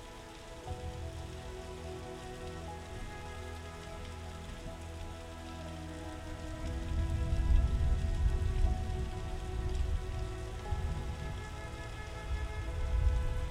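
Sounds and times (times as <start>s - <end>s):
gentle rain: 0.0s - 13.4s.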